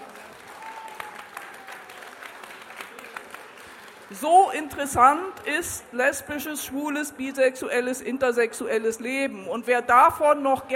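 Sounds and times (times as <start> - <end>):
audience applause: 0.0 - 4.1
speech: 4.1 - 10.7.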